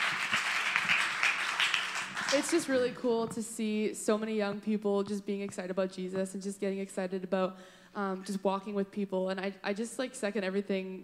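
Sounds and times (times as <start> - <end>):
audience applause: 0.0 - 2.9
speech: 2.3 - 11.0.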